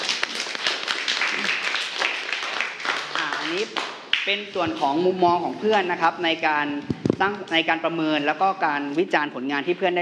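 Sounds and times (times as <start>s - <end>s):
classroom applause for a student: 0.0s - 4.2s
speech: 3.5s - 10.0s.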